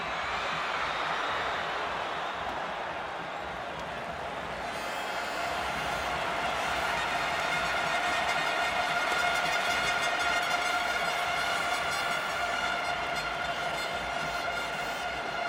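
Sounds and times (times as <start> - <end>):
Peruvian football match goal: 0.0 - 15.4.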